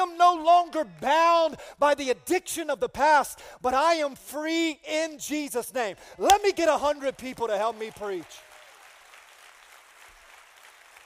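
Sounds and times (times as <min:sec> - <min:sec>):
speech: 0:00.0 - 0:08.5
audience clapping: 0:06.3 - 0:11.0.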